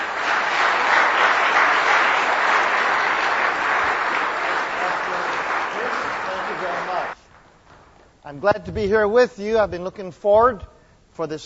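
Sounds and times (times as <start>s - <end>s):
church congregation applause welcoming a guest speaker at a morning service: 0.0s - 8.4s
speech: 8.4s - 11.4s.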